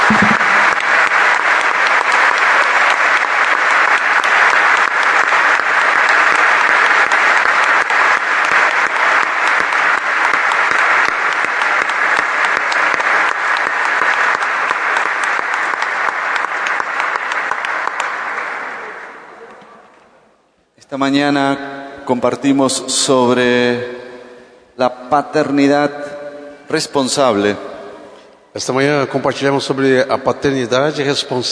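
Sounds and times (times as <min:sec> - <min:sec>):
audience applause: 0:00.0 - 0:19.5
speech: 0:21.0 - 0:24.0, 0:24.8 - 0:26.0, 0:26.7 - 0:27.7, 0:28.6 - 0:31.5.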